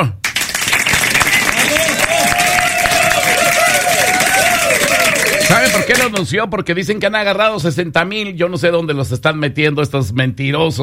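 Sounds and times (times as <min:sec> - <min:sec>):
speech: 0:00.0 - 0:00.2, 0:05.9 - 0:10.8
applause: 0:00.0 - 0:06.2.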